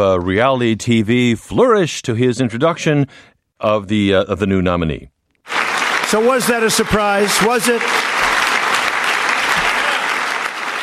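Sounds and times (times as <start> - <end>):
speech: 0.0 - 5.1, 6.1 - 8.0
big crowd applauding in the White House: 5.4 - 10.8.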